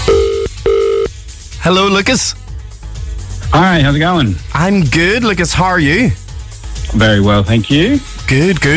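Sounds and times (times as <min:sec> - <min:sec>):
telephone ringing tone on an outgoing call during a radio phone-in game: 0:00.1 - 0:01.1
speech: 0:01.7 - 0:02.4, 0:03.5 - 0:06.2, 0:06.9 - 0:08.7.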